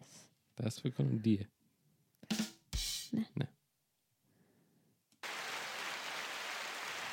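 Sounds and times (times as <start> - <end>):
speech: 0.6 - 1.6
applause in honour of LGBTQI+ people: 5.2 - 7.1.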